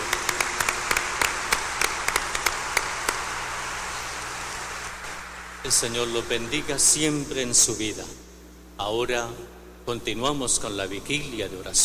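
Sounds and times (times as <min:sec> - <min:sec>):
audience applauding: 0:00.0 - 0:05.5
speech: 0:05.7 - 0:08.2, 0:08.8 - 0:11.8.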